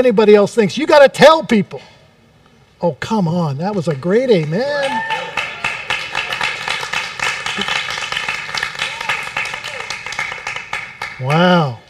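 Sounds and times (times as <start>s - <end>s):
speech: 0.0s - 2.0s, 2.8s - 5.3s, 7.6s - 7.8s, 11.2s - 11.8s
audience clapping: 4.4s - 11.4s.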